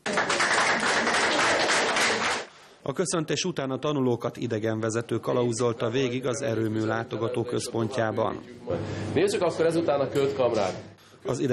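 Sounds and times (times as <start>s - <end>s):
applause for a power plant's 500,000th visitor: 0.0s - 2.5s
speech: 2.9s - 11.5s.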